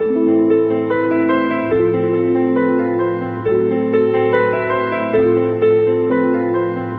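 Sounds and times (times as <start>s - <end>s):
sad piano loop: 0.0s - 6.9s.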